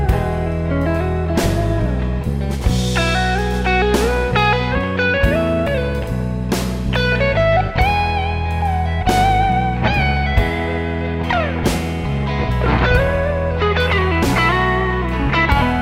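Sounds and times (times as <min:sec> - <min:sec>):
solo performance: 0:00.0 - 0:15.7.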